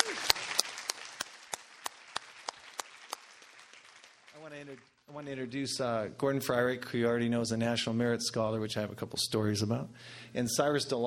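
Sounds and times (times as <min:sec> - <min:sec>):
audience applause: 0:00.0 - 0:05.0
speech: 0:04.5 - 0:11.0.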